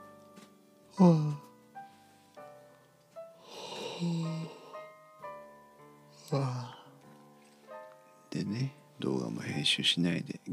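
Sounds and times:
soft sighing breaths: 0.9s - 5.2s, 6.1s - 7.8s
speech: 1.0s - 1.4s, 9.7s - 10.5s
person yawning: 1.0s - 1.5s, 3.4s - 4.8s, 6.2s - 6.9s.

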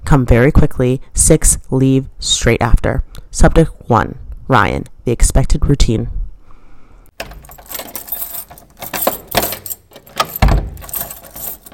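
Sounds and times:
speech: 0.1s - 6.2s
door lock bolt turning with a low clunk: 7.2s - 11.7s
keys jangling and scraping in an apartment door lock: 7.2s - 11.7s.

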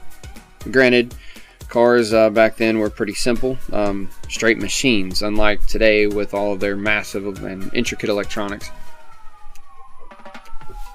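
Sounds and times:
sirens going by outside: 0.0s - 1.2s, 3.5s - 10.9s
speech: 0.6s - 8.8s.

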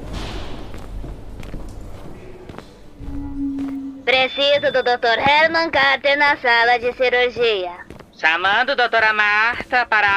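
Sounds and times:
low hum: 0.0s - 4.9s
steady low tone: 0.0s - 4.9s
man's footsteps walking through hospital corridors: 0.0s - 10.1s
speech: 4.2s - 10.1s.

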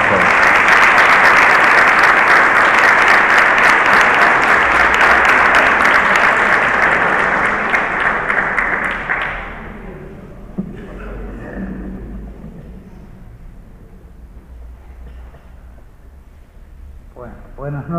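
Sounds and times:
audience applause: 0.0s - 10.2s.

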